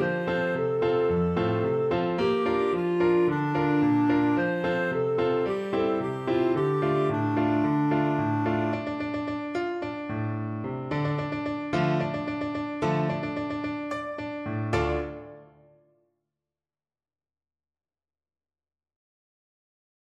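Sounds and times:
clarinet melody: 0.0s - 10.2s, 10.9s - 15.7s.

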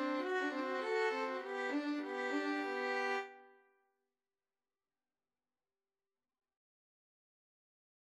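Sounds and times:
cello playing a polska: 0.0s - 3.3s
two violins playing a polska: 0.0s - 3.4s.

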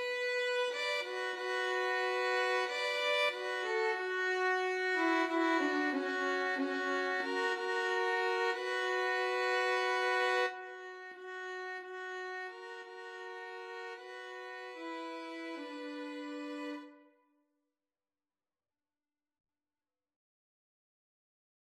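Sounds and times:
violin trio: 0.0s - 17.0s.

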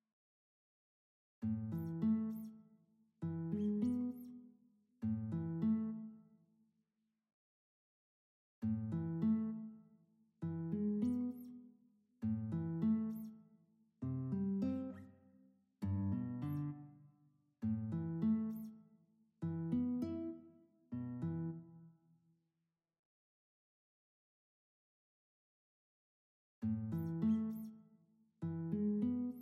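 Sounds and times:
classical guitar duet: 1.4s - 2.5s, 3.2s - 4.3s, 5.0s - 6.0s, 8.6s - 9.6s, 10.4s - 11.5s, 12.2s - 13.3s, 14.0s - 15.1s, 15.8s - 16.9s, 17.6s - 18.7s, 19.4s - 21.7s, 26.6s - 27.7s, 28.4s - 29.4s.

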